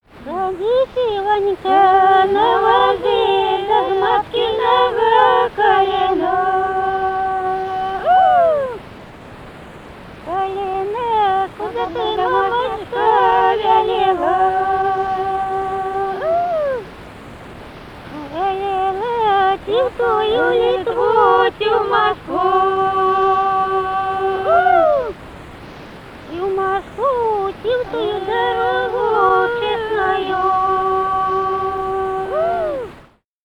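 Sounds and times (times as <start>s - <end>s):
wedding folk song: 0.0s - 33.2s.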